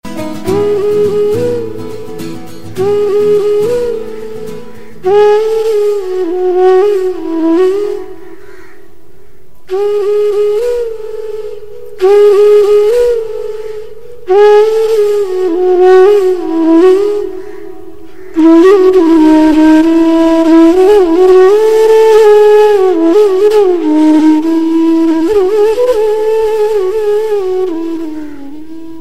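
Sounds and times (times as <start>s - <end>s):
refreshing flute tone: 0.0s - 9.0s, 9.6s - 29.0s.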